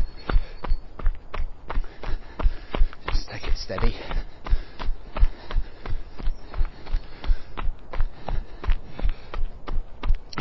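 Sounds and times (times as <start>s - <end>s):
jogging footsteps on an icy downhill path: 0.0s - 10.4s
speech: 3.7s - 4.3s.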